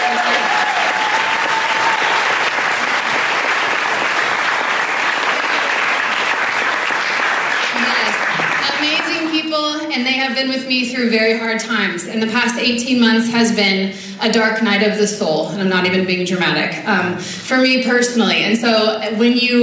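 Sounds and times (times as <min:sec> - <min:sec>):
faint voices and cheers: 0:00.0 - 0:02.9
large audience applause: 0:00.0 - 0:09.5
speech: 0:10.2 - 0:19.6.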